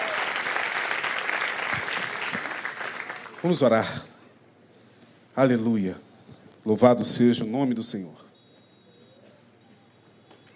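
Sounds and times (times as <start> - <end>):
audience applauding: 0.0 - 3.6
speech: 3.4 - 4.1, 5.4 - 8.2.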